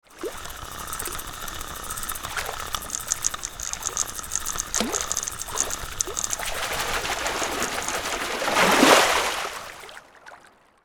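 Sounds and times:
waves splashing against a fishing boat: 4.6s - 10.4s.

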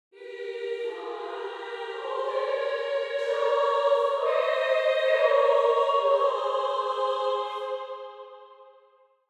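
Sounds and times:
angelic choir singing: 0.2s - 9.0s.

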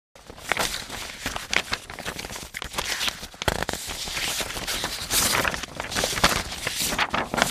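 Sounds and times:
paper shuffling: 0.2s - 7.5s.

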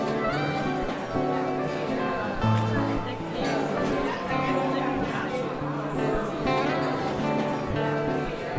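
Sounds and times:
mixed crowd chatter in a pub: 0.0s - 8.5s.

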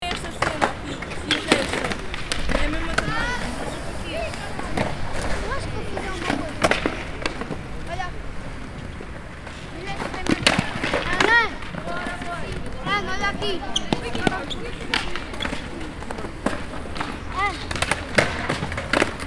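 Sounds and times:
roller skates rolling at a rink: 0.0s - 19.2s.

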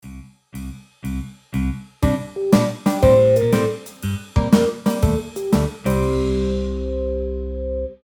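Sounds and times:
sitcom plot transition music: 2.0s - 8.0s.

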